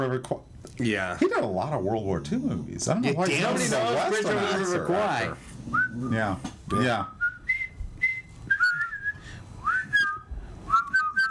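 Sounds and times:
speech: 0.0s - 7.2s
person whistling a march tune: 6.8s - 11.3s.

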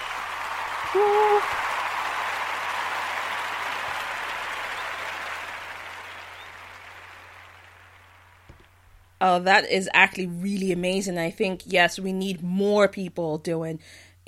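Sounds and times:
round of applause: 0.0s - 8.8s
speech: 0.9s - 1.6s, 9.2s - 14.2s.

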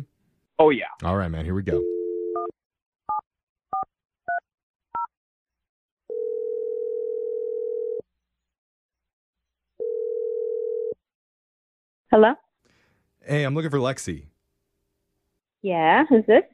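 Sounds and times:
speech: 0.6s - 2.0s, 12.1s - 12.4s, 13.2s - 14.3s, 15.6s - 16.5s
telephone dialing tone: 1.8s - 2.5s, 6.1s - 8.0s, 9.8s - 11.0s.

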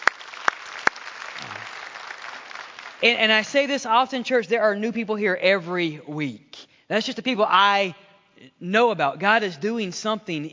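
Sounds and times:
audience applauding: 0.0s - 3.1s
speech: 3.0s - 10.5s.

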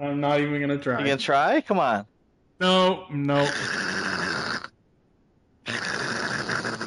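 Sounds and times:
speech: 0.0s - 4.0s
voice imitating a platypus: 2.6s - 4.7s, 5.7s - 6.8s.

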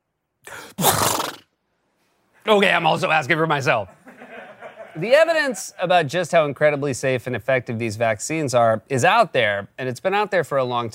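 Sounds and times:
person sneezing: 0.5s - 1.5s
speech: 2.5s - 4.0s, 5.0s - 10.9s
laughter: 3.9s - 5.8s.

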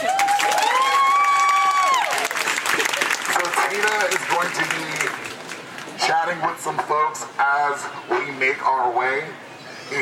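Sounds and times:
audience applause: 0.0s - 6.0s
speech: 6.4s - 10.0s.

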